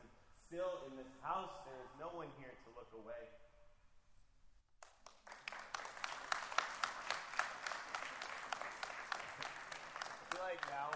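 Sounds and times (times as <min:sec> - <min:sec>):
speech: 0:00.5 - 0:03.5, 0:10.5 - 0:10.9
small audience applause after poetry reading: 0:04.8 - 0:10.9.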